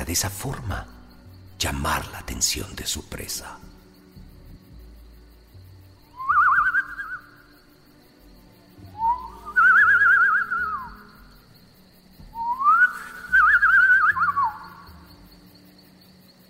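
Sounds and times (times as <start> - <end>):
speech: 0.1 - 1.0, 1.6 - 3.7
person whistling through pursed lips imitating a birdcall: 6.2 - 7.4, 8.9 - 11.0, 12.4 - 14.7.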